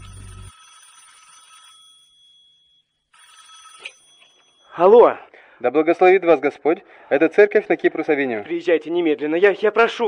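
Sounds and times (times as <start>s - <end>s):
telephone ringing as a call is placed to a church: 0.0s - 4.7s
speech: 4.8s - 10.0s.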